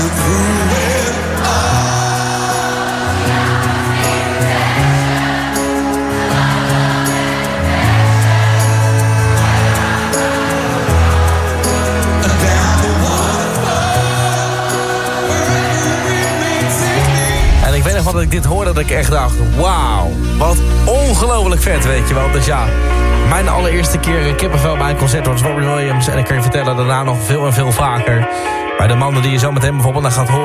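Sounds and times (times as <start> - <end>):
concert crowd singing along: 0.0 - 18.7
speech: 18.8 - 20.7, 21.5 - 30.4.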